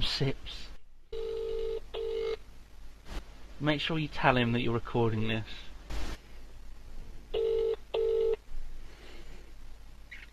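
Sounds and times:
speech: 0.2 - 0.7, 3.6 - 5.7
telephone call ringback tone, unanswered: 1.1 - 2.4, 7.3 - 8.4.

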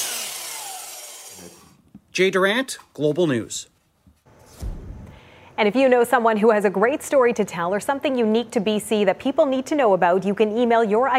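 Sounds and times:
saw cutting through wood: 0.0 - 1.8
speech: 1.4 - 3.8, 5.6 - 11.1.

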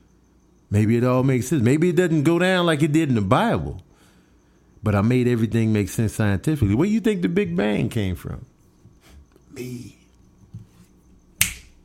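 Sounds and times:
speech: 0.7 - 3.9, 4.8 - 8.5, 9.6 - 10.0
finger snap: 11.4 - 11.8.

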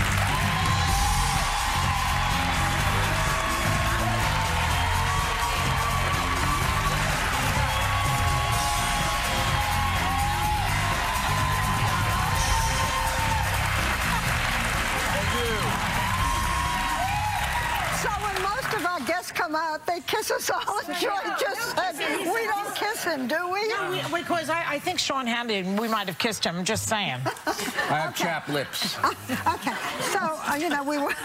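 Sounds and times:
talk show studio audience clapping: 0.0 - 19.6
speech: 20.3 - 31.2
laughter: 27.2 - 31.2.

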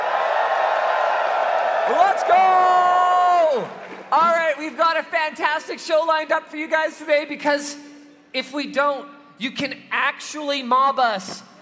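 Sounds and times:
live audience cheering and shouting: 0.0 - 4.8
speech: 3.6 - 11.4.

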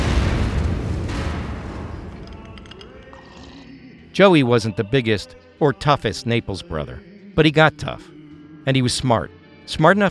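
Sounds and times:
car bomb explosion: 0.0 - 4.1
crackling debris-like noise: 0.0 - 4.2
speech: 4.2 - 10.0.

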